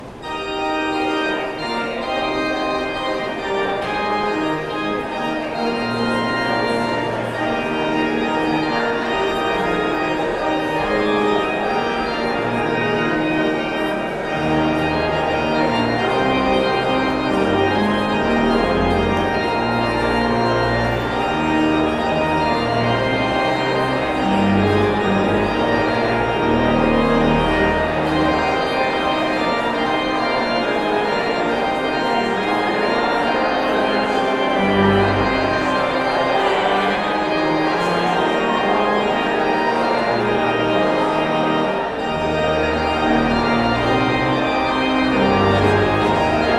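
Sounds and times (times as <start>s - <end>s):
postlude: 0.0s - 46.5s.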